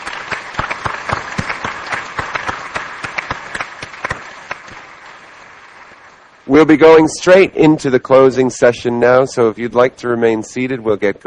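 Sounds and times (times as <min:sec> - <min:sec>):
audience applause: 0:00.0 - 0:06.8
speech: 0:06.5 - 0:11.2.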